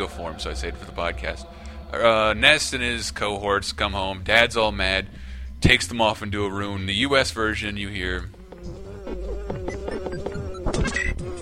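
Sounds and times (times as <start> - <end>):
speech: 0.0 - 8.8
fly buzzing around head: 8.1 - 11.3.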